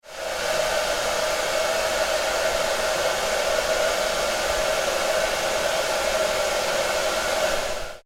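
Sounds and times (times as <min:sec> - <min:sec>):
hair dryer: 0:00.0 - 0:08.0.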